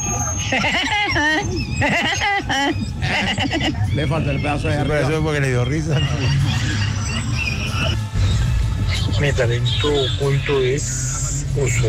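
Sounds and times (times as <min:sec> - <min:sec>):
speech: 0:00.4 - 0:06.8, 0:09.2 - 0:11.8
person imitating a cartoon woodpecker's laugh: 0:00.4 - 0:08.3.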